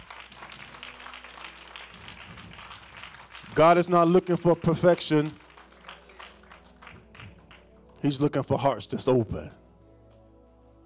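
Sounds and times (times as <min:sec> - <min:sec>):
audience clapping hands: 0:00.0 - 0:08.4
speech: 0:03.6 - 0:05.4, 0:08.0 - 0:09.6.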